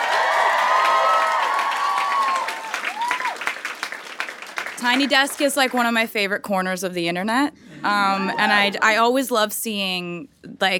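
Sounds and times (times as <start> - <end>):
audience applause: 0.0 - 5.7
speech: 4.8 - 10.7.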